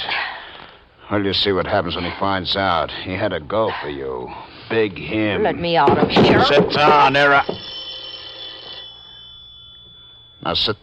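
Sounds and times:
speech: 1.1s - 7.7s, 10.4s - 10.8s
telephone bell ringing: 5.9s - 10.8s.

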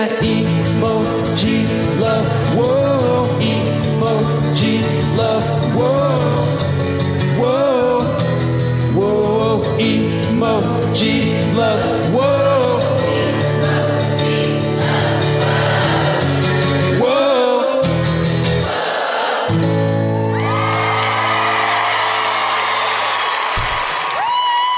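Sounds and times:
speech: 0.0s - 2.8s, 9.8s - 12.4s
music: 0.0s - 22.9s
live concert crowd cheering and whooping: 13.0s - 17.1s, 17.9s - 24.7s
applause: 20.2s - 24.7s.

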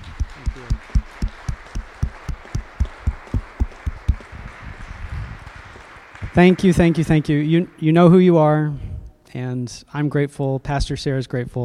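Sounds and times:
audience clapping: 0.0s - 8.6s
speech: 6.4s - 11.6s.

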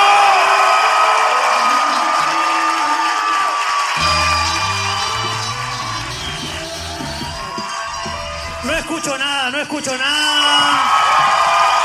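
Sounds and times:
crowd applauding and cheering: 0.0s - 11.8s
low musical tone: 4.0s - 8.7s.

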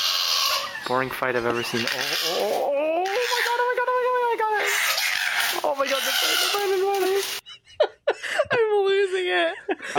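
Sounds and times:
koala screams: 0.0s - 0.9s, 1.5s - 3.7s, 4.4s - 7.4s
speech: 0.9s - 3.8s, 5.5s - 7.4s, 8.5s - 9.9s
laughter: 7.4s - 9.9s.

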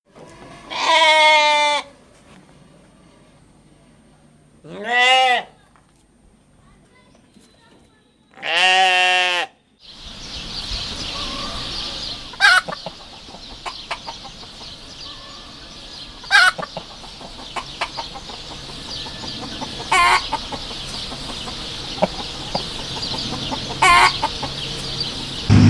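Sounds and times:
goats bleating: 0.6s - 1.9s, 8.4s - 9.5s
chickens clucking: 10.8s - 25.5s.

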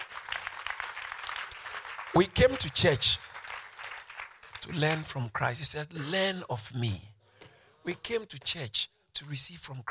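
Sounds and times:
audience clapping in church: 0.0s - 5.4s
speech: 2.1s - 3.3s, 4.7s - 7.1s, 7.9s - 9.9s.

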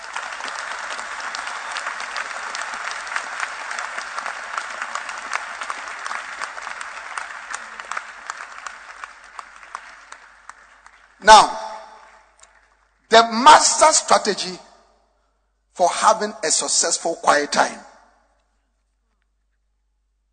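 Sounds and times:
audience clapping hands: 0.0s - 14.0s
speech: 11.2s - 11.6s, 13.2s - 14.6s, 15.8s - 17.9s.

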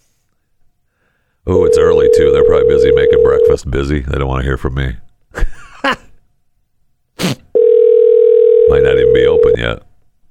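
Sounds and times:
speech: 1.4s - 6.0s
telephone ringback tone on an outgoing call: 1.5s - 3.6s, 7.6s - 9.6s.

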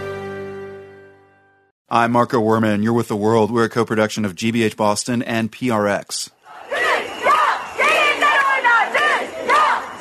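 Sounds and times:
speech: 1.9s - 6.4s
protesters in Turkey shouting: 6.4s - 9.9s.

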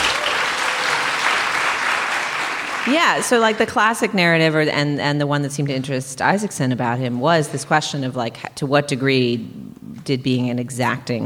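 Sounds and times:
audience clapping in response to a show-of-hands question: 0.0s - 4.0s
speech: 2.8s - 11.2s.

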